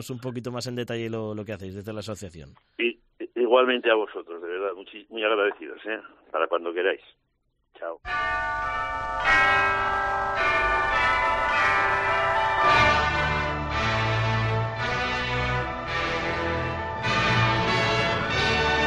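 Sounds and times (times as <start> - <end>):
speech: 0.0 - 7.2, 7.8 - 10.6
radio programme theme tune of chiming bell-like tones: 8.1 - 18.8.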